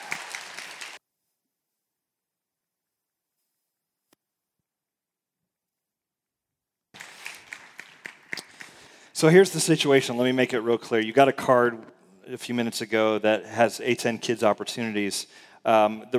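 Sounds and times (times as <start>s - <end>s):
audience applause: 0.0s - 1.0s, 7.0s - 10.6s
speech: 9.2s - 16.1s.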